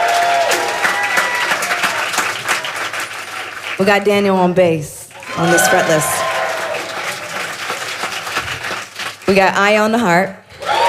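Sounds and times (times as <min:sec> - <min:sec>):
audience applause for band member: 0:00.0 - 0:04.0, 0:05.2 - 0:09.6
speech: 0:03.8 - 0:06.2, 0:09.3 - 0:10.4.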